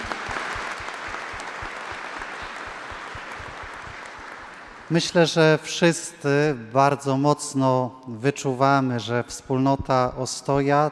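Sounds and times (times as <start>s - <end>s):
audience applause: 0.0s - 5.4s
speech: 4.9s - 10.9s.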